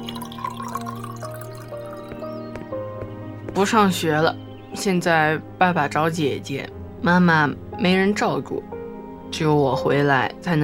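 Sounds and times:
glass clinks: 0.0s - 2.2s
water poured into glasses: 0.0s - 2.3s
speech: 3.6s - 8.7s, 9.3s - 10.6s.

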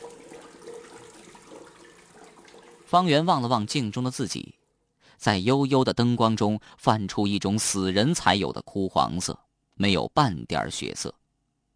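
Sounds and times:
water running from a turned-on tap: 0.0s - 3.3s
speech: 2.9s - 4.6s, 5.2s - 11.2s.

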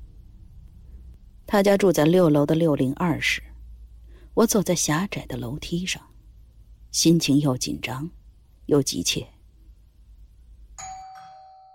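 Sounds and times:
speech: 1.5s - 3.5s, 4.4s - 6.1s, 6.9s - 9.4s
doorbell ringing: 10.8s - 11.7s.

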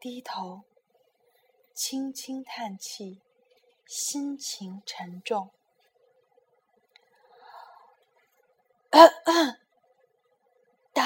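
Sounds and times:
speech: 0.0s - 0.7s, 1.8s - 3.3s, 3.9s - 5.6s, 8.9s - 9.6s
person imitating a cricket coughing: 9.0s - 9.6s.

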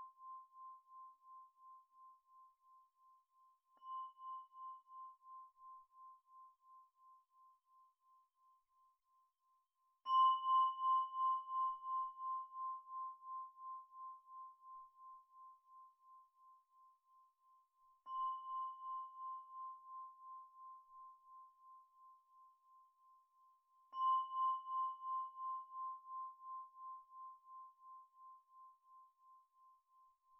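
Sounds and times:
antique Tibetan singing bowls struck and ringing: 10.0s - 15.0s, 18.0s - 21.1s, 23.9s - 28.2s.

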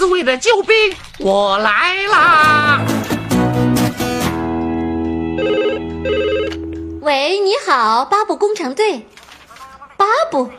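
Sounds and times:
speech: 0.1s - 3.1s, 7.1s - 9.2s, 10.0s - 10.5s
music: 2.2s - 7.2s
telephone ringing: 5.4s - 6.9s.

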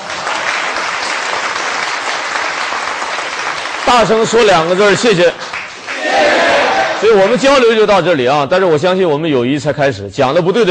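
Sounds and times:
warm audience applause: 0.0s - 7.4s
speech: 3.9s - 6.4s, 7.0s - 10.6s.

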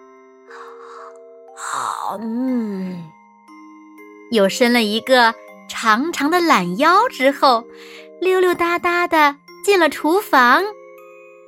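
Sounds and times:
big yawn: 0.5s - 3.2s
speech: 1.8s - 3.2s, 4.3s - 10.8s.

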